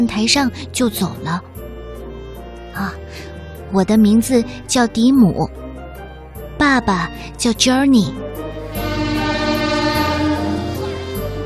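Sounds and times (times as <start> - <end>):
speech: 0.0 - 1.6, 2.8 - 5.6, 6.6 - 8.4
horn-like tones: 8.6 - 11.4
train arriving and clanking to a stop: 8.7 - 11.4.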